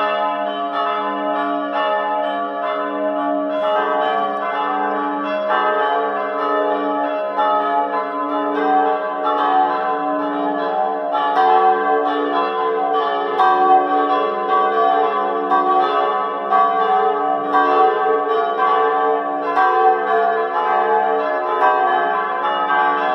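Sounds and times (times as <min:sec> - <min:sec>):
church bells ringing: 0:00.0 - 0:23.1.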